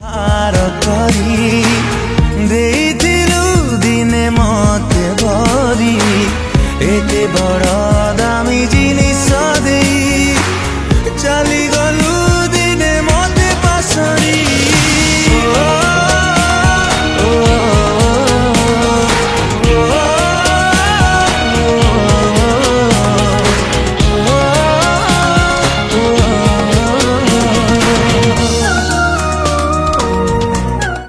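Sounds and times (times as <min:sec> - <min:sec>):
Odia sad song: 0:00.0 - 0:31.0.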